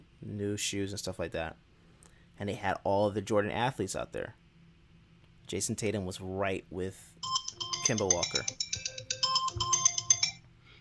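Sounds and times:
speech: 0.3s - 1.7s, 2.4s - 4.4s, 5.5s - 8.6s
timer alarm ringing: 7.2s - 10.5s.

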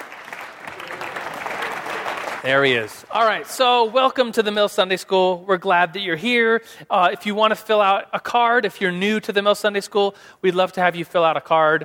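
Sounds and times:
audience applause: 0.0s - 3.5s
speech: 2.4s - 11.8s.

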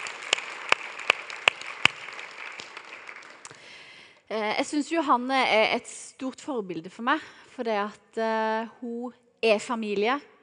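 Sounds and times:
audience clapping: 0.0s - 4.0s
speech: 4.3s - 10.3s.

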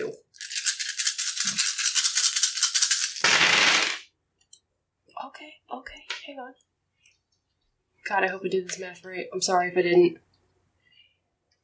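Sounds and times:
large handful of dice rolling: 0.0s - 4.1s
speech: 5.4s - 6.7s, 8.1s - 10.3s.

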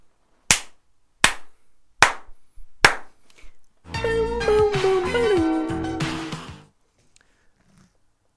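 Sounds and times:
rhythmic hand slaps: 0.5s - 3.2s
sustained pitched melodic sound with gliding tones: 3.9s - 6.5s.

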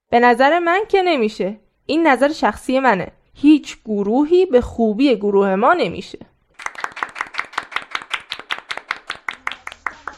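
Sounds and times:
speech: 0.1s - 6.3s
audience clapping: 6.6s - 10.1s.

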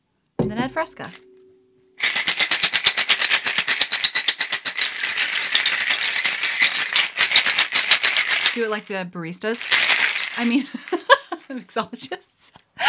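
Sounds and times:
speech: 0.5s - 1.3s, 8.6s - 12.4s
shaking a drink in a shaker: 2.0s - 11.6s.

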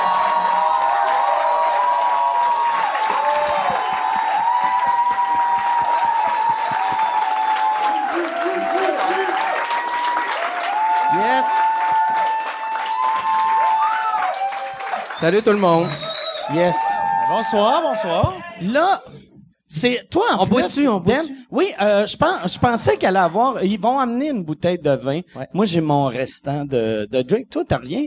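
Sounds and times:
audience applause: 0.0s - 17.8s
speech: 15.2s - 19.1s, 19.7s - 28.0s.

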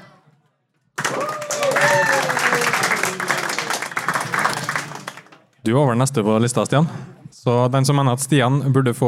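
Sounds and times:
crowd applauding: 1.0s - 5.6s
speech: 5.6s - 9.0s.

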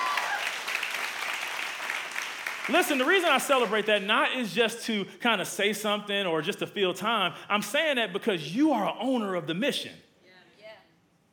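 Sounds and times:
audience applauding: 0.0s - 4.3s
speech: 2.7s - 10.0s.

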